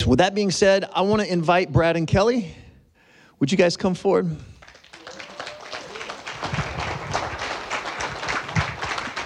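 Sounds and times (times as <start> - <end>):
speech: 0.0 - 2.6, 3.4 - 4.5
audience clapping: 4.6 - 9.2.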